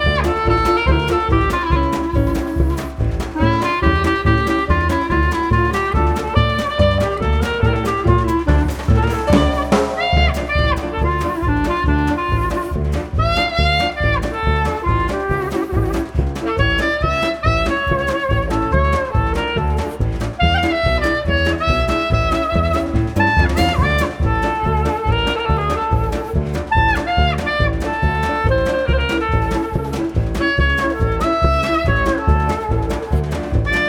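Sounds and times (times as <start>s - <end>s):
instrumental music: 0.0s - 33.8s.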